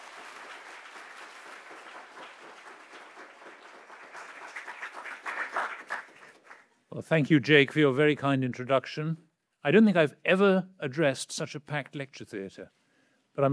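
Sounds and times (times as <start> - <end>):
audience applause: 0.0 - 6.7
speech: 6.9 - 12.8, 13.4 - 13.5.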